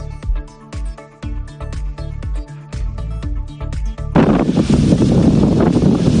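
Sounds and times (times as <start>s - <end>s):
rhythmic music: 0.0s - 6.0s
strong wind gusts buffeting the microphone: 4.2s - 6.1s.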